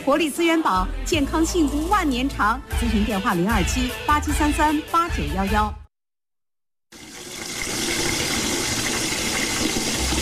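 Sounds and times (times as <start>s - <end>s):
speech: 0.1s - 5.8s
water running from a tap: 6.9s - 10.2s.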